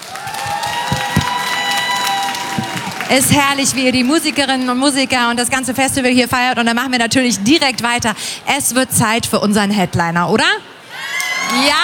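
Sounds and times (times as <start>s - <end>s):
festival audience applause and cheering: 0.0s - 5.5s
speech: 3.1s - 10.7s, 11.5s - 11.8s.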